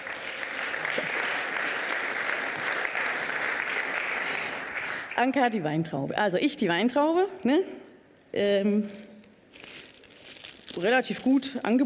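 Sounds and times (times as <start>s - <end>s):
applause: 0.0s - 5.4s
speech: 5.2s - 9.1s, 10.8s - 11.8s.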